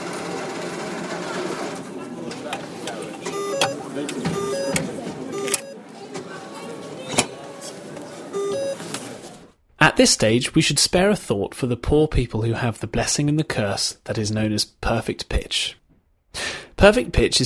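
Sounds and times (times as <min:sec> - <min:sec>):
noise: 0:00.0 - 0:17.4
cash machine tritone alert two-note beeps: 0:03.3 - 0:03.8, 0:04.4 - 0:04.8, 0:05.4 - 0:05.8, 0:08.4 - 0:08.8
speech: 0:10.0 - 0:15.8, 0:16.8 - 0:17.4.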